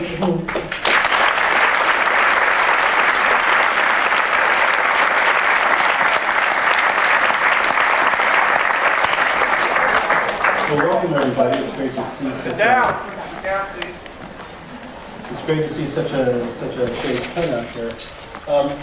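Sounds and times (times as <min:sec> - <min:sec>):
speech: 0:00.2 - 0:00.7, 0:11.0 - 0:14.0, 0:15.3 - 0:18.8
audience applause welcoming guests on stage: 0:00.5 - 0:11.8.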